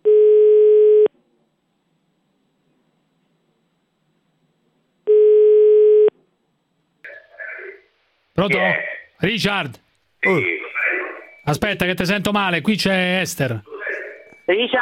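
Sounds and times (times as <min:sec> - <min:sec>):
outgoing telephone call tone with low steady beeps: 0:00.0 - 0:01.1, 0:05.1 - 0:06.1
speech: 0:08.4 - 0:10.6, 0:11.4 - 0:13.7, 0:14.5 - 0:14.7.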